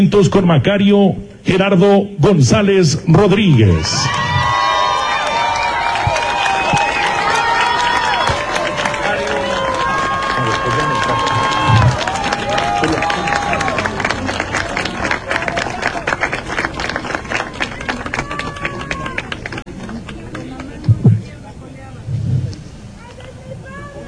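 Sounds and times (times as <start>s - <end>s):
speech: 0.0s - 4.3s
audience applause and cheering: 3.9s - 20.3s.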